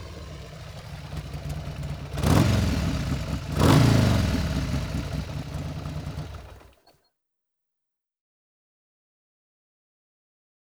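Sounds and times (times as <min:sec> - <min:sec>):
motorcycle: 0:00.0 - 0:07.1.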